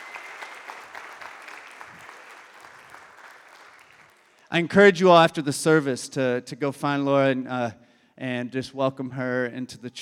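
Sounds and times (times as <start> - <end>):
congregation applause at a Sunday service at Embrace Church in Lexington, Kentucky: 0.0 - 4.7
speech: 4.5 - 10.0.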